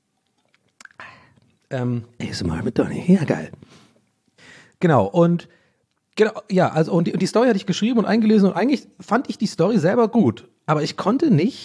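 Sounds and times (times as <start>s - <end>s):
person gulping a drink: 0.2s - 1.7s
mouth clicks: 0.4s - 1.7s
speech: 1.7s - 3.8s, 4.8s - 5.6s, 6.2s - 11.6s.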